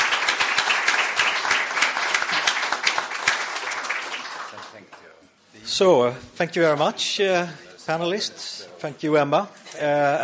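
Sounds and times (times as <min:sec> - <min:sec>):
audience applause: 0:00.0 - 0:05.0
speech: 0:05.8 - 0:10.2.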